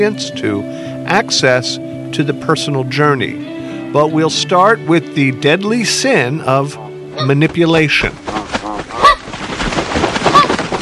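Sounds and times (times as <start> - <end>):
speech: 0.0 - 8.2
migratory birds honking in goose-like calls: 7.2 - 7.4, 8.2 - 9.4, 10.2 - 10.7.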